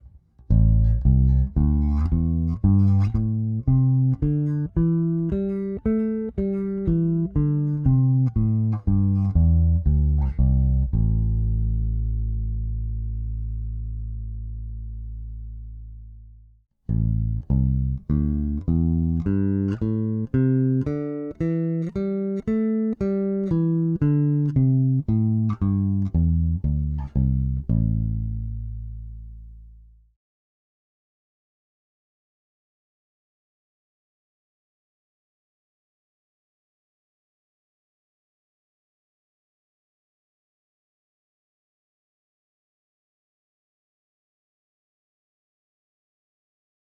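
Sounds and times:
bass guitar with Aguilar Super Double and Nordstrand Big Blade active pickups: 0.0 - 30.1.

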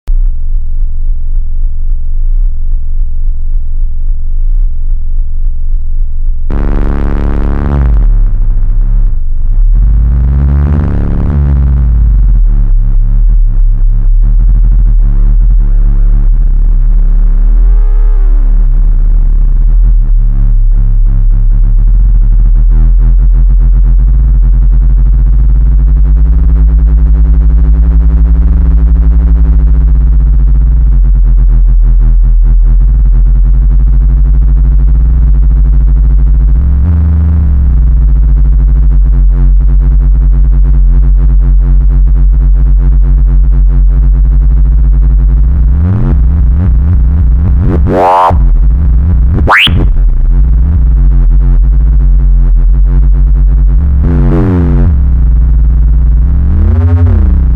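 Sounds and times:
heavy bass: 0.0 - 57.5.

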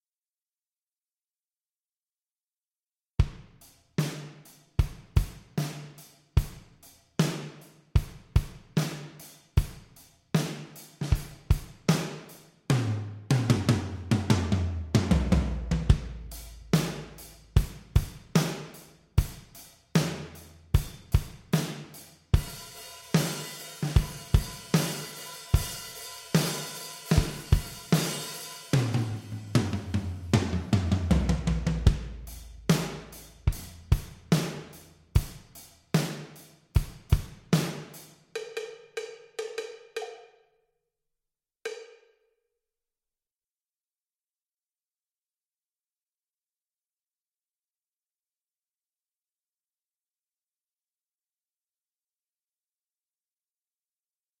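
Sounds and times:
black drum kit in real room: 3.2 - 38.6.

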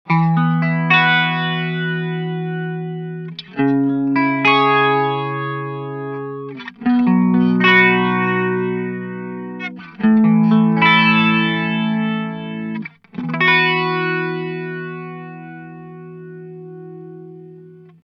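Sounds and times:
Boss ME 90 chorus effect: 0.1 - 18.0.

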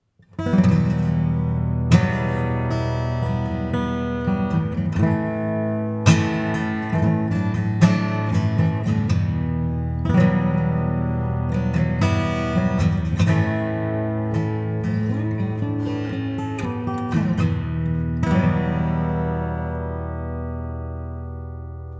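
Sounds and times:
acoustic guitar music with hall plate reverb: 0.0 - 21.9.

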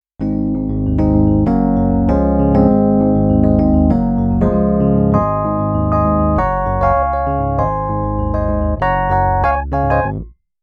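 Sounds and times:
Nord EP5 electric piano with bright tines: 0.2 - 10.2.

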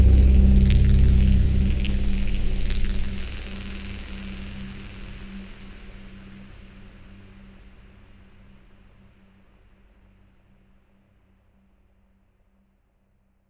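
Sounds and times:
granular and regular soundscape motion: 0.0 - 5.9.

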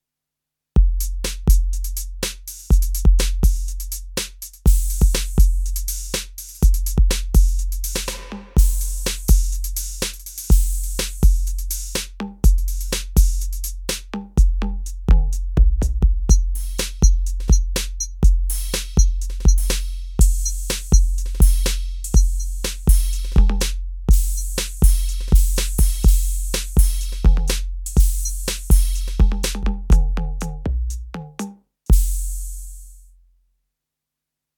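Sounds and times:
Roland TD 02KV electronic drums: 0.9 - 32.9.

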